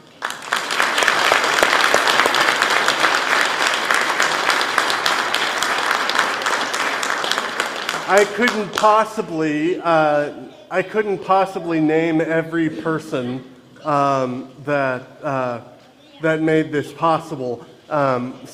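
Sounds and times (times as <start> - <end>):
audience applause: 0.0 - 9.1
speech: 8.1 - 18.5.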